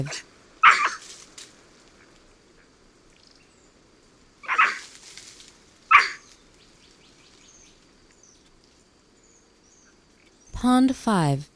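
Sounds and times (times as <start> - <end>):
speech: 0.0 - 0.3, 10.6 - 11.5
white-throated capuchin barking calls: 0.0 - 1.1, 4.4 - 4.9, 5.9 - 6.4.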